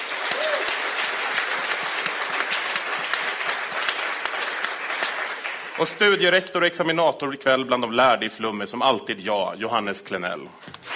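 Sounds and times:
audience applause: 0:00.0 - 0:06.3
speech: 0:05.8 - 0:10.7.

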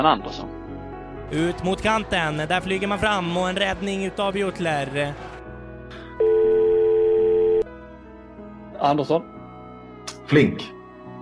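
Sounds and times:
speech: 0:00.0 - 0:00.6, 0:01.3 - 0:05.3, 0:08.8 - 0:09.3, 0:10.3 - 0:10.8
telephone ringback tone of an outgoing call: 0:06.2 - 0:07.7.

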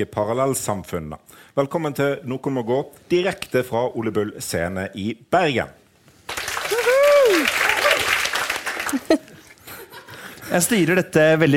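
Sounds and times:
speech: 0:00.0 - 0:05.8, 0:10.5 - 0:11.5
audience applause: 0:06.3 - 0:09.3
people cheering and whooping: 0:06.6 - 0:08.4.

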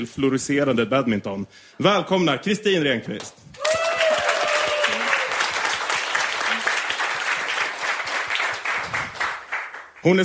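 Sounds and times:
speech: 0:00.0 - 0:03.4, 0:10.0 - 0:10.2
audience applause welcoming a guest: 0:03.6 - 0:10.0.

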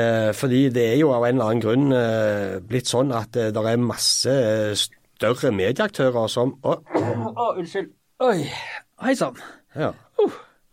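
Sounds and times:
speech: 0:00.0 - 0:10.4
sneeze: 0:06.9 - 0:07.4.

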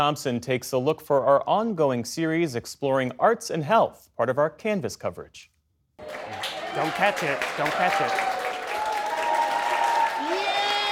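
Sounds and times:
speech: 0:00.0 - 0:08.3
health professionals at the Mayo Clinic in Rochester, Minnesota applauding and cheering: 0:06.0 - 0:10.9.

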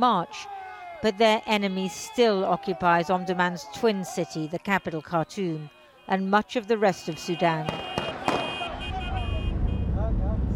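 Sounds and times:
speech: 0:00.0 - 0:08.0
car driving through the ruined city of Omdurman, Sudan: 0:07.7 - 0:10.5.

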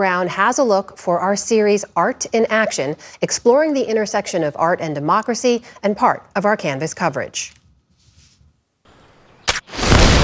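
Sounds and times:
speech: 0:00.0 - 0:07.6
gunshot: 0:09.5 - 0:10.2.

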